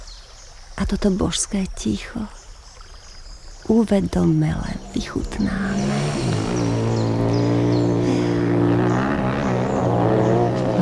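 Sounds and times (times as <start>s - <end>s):
speech: 0.8s - 2.4s, 3.7s - 7.5s
motorcycles passing: 4.6s - 10.8s.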